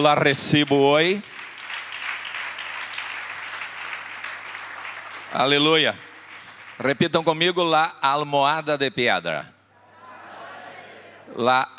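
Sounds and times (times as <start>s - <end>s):
speech: 0.0s - 1.3s, 5.4s - 6.1s, 6.8s - 9.5s, 11.3s - 11.7s
audience applauding: 0.6s - 7.3s.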